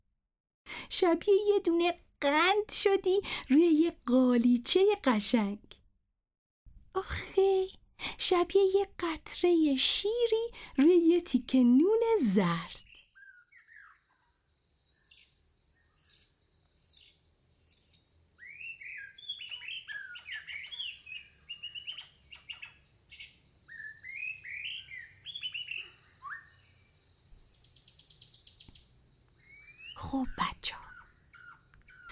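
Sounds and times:
speech: 0:00.9 - 0:05.8, 0:07.0 - 0:12.8, 0:30.0 - 0:30.8
woodland birdsong: 0:12.2 - 0:32.1.

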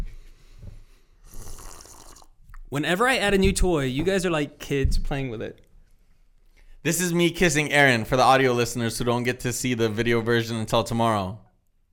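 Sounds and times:
person sipping water: 0:01.2 - 0:02.7
speech: 0:02.7 - 0:05.6, 0:06.8 - 0:11.4.

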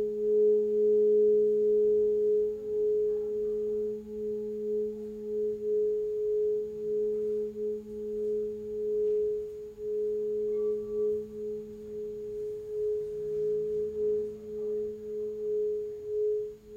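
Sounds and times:
crystal singing bowl ringing: 0:00.0 - 0:16.7
softer lower hum: 0:00.0 - 0:16.7.

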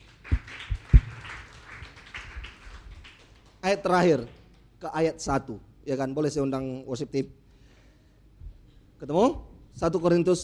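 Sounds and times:
audience applause: 0:00.0 - 0:03.6
speech: 0:03.6 - 0:07.4, 0:09.0 - 0:10.4.

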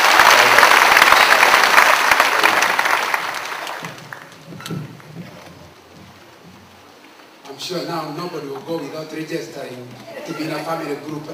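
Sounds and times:
church congregation applauding an elder welcomed to speak: 0:00.0 - 0:04.5
speech: 0:07.7 - 0:11.3.

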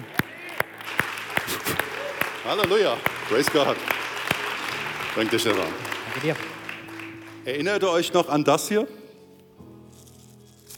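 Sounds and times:
audience applause: 0:00.0 - 0:08.0
speech: 0:02.5 - 0:03.9, 0:05.2 - 0:06.6, 0:07.4 - 0:09.0.

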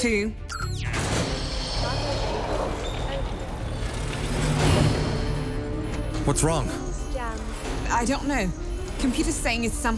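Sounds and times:
speech: 0:00.0 - 0:00.8, 0:06.3 - 0:06.8, 0:07.9 - 0:09.9
heavy mechanical doors grinding open: 0:00.9 - 0:06.3.

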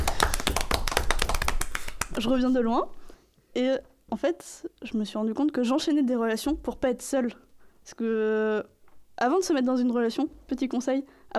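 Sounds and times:
applause: 0:00.0 - 0:02.2
speech: 0:02.2 - 0:03.0, 0:03.6 - 0:11.3.

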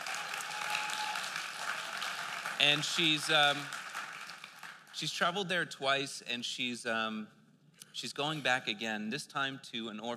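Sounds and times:
audience applause: 0:00.0 - 0:04.9
speech: 0:02.6 - 0:03.8, 0:05.0 - 0:07.4, 0:08.0 - 0:10.1.

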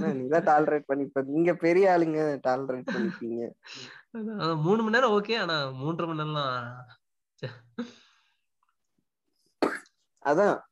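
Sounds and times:
speech: 0:00.0 - 0:08.0, 0:09.6 - 0:10.7
person coughing: 0:09.6 - 0:09.9.

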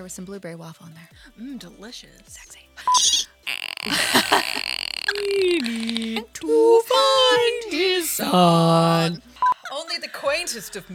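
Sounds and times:
speech: 0:00.0 - 0:03.1, 0:03.8 - 0:09.3, 0:10.0 - 0:10.9
burp: 0:02.9 - 0:06.2
laughter: 0:02.9 - 0:06.4, 0:08.2 - 0:10.9.

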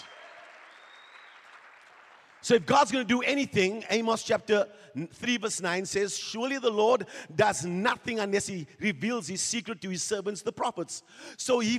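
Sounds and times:
audience clapping: 0:00.0 - 0:03.0
speech: 0:02.4 - 0:11.7.

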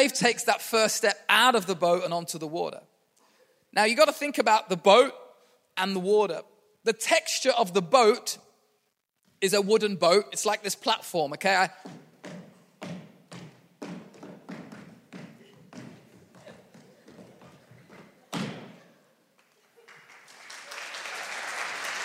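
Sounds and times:
speech: 0:00.0 - 0:02.9, 0:03.7 - 0:05.2, 0:05.8 - 0:08.4, 0:09.4 - 0:12.4
audience clapping and stomping: 0:11.8 - 0:22.0.

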